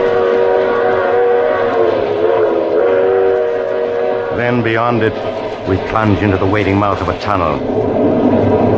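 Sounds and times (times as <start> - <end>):
train speeding along open track at night: 0.0 - 8.7
speech: 4.6 - 8.7.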